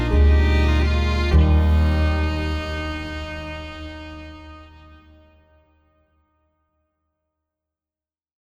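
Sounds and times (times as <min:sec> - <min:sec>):
soft piano: 0:00.0 - 0:05.3
violins: 0:00.0 - 0:05.3.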